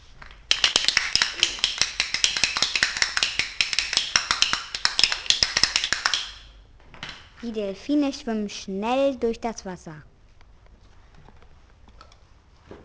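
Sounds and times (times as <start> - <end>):
people clapping in a dolphinarium: 0.3 - 6.6
speech: 7.4 - 10.1.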